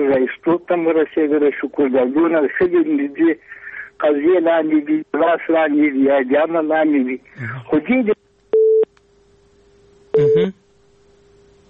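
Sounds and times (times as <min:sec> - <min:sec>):
speech: 0:00.1 - 0:08.2, 0:10.2 - 0:10.6
telephone busy signal after a dropped call-in connection: 0:08.6 - 0:08.8, 0:10.1 - 0:10.5.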